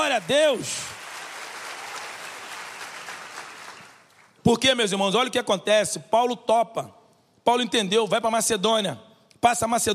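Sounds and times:
audience applause: 0:00.0 - 0:04.3
speech: 0:00.2 - 0:01.0, 0:04.5 - 0:09.9.

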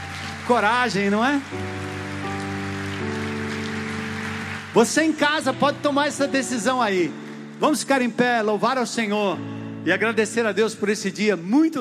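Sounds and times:
audience applause: 0:00.0 - 0:06.4
sustained keyboard chords: 0:00.4 - 0:11.7
speech: 0:00.5 - 0:02.0, 0:04.7 - 0:11.7.

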